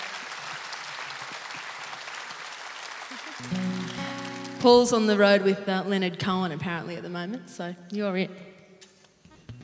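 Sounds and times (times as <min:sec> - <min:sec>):
audience clapping: 0:00.0 - 0:05.0
speech: 0:03.4 - 0:03.7, 0:04.6 - 0:08.5.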